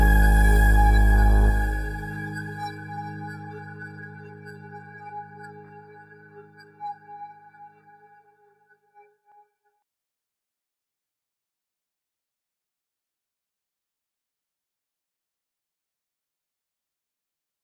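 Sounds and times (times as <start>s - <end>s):
karaoke singing: 0.0s - 4.7s.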